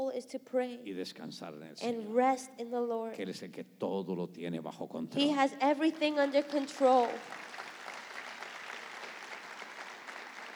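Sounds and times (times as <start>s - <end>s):
speech: 0.2s - 7.5s
audience applause: 5.8s - 10.5s.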